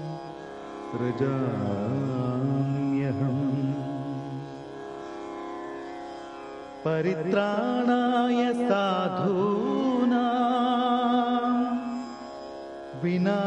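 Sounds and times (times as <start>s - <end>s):
devotional chant: 0.0s - 4.7s, 6.8s - 12.2s, 12.9s - 13.4s.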